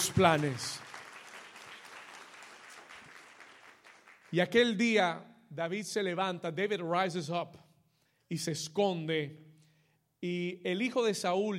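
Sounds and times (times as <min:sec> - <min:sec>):
audience applause: 0:00.0 - 0:04.4
speech: 0:00.1 - 0:00.8, 0:04.3 - 0:07.6, 0:08.3 - 0:09.5, 0:10.2 - 0:11.5.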